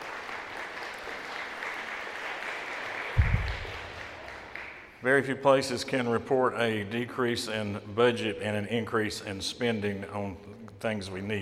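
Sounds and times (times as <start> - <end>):
audience applause: 0.0 - 4.9
low thumps: 3.2 - 4.0
speech: 5.0 - 11.4.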